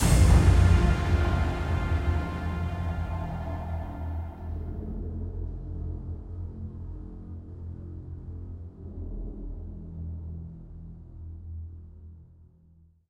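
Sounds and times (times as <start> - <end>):
music stinger: 0.0 - 5.1.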